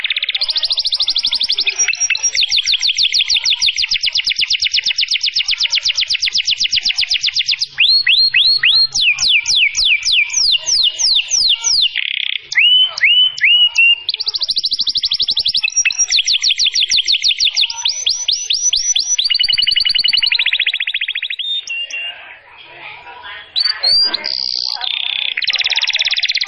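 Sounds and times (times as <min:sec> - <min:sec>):
canary singing: 0:00.0 - 0:26.4.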